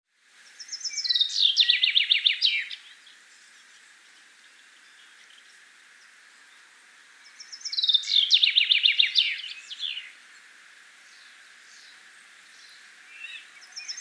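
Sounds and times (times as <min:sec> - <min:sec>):
Common chaffinch singing cascading rattle: 0:00.4 - 0:13.9.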